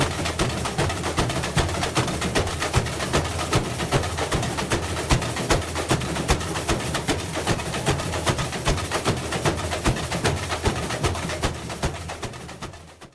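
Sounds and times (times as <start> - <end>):
samba drum break live in Rio: 0.0 - 13.1.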